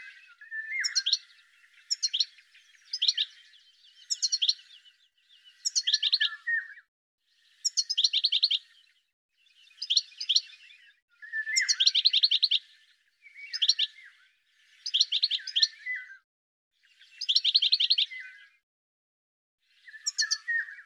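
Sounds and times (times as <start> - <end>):
bird giving bursts of quick high twittering notes: 0.0 - 6.8, 7.5 - 8.7, 9.6 - 14.1, 14.8 - 16.0, 17.0 - 18.4, 19.8 - 20.8.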